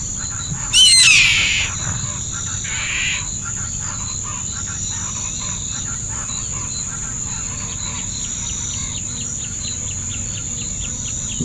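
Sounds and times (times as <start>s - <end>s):
bird harsh call: 0.8s - 1.8s, 2.7s - 3.3s.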